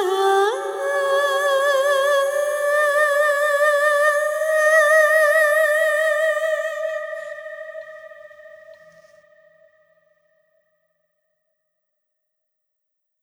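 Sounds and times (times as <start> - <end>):
person singing: 0.0 - 8.1.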